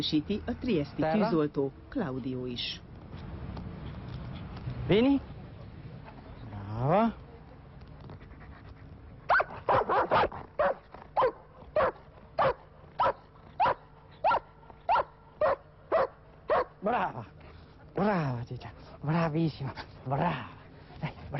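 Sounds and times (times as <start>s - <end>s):
speech: 0.0s - 2.9s, 4.9s - 5.3s, 6.8s - 7.2s, 18.5s - 20.6s
dog barking: 9.3s - 16.8s.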